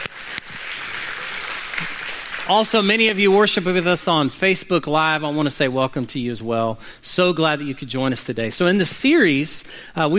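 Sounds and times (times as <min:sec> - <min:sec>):
audience applause: 0:00.0 - 0:03.5
speech: 0:02.5 - 0:10.1.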